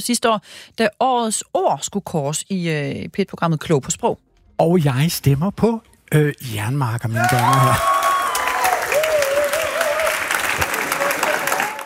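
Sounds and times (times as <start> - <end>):
speech: 0.0 - 7.9
studio audience applause: 7.2 - 11.8.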